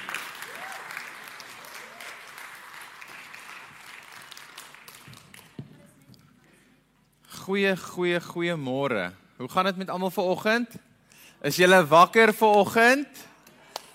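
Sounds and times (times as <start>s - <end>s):
audience applause: 0.0s - 5.6s
speech: 7.5s - 10.8s, 11.4s - 13.3s.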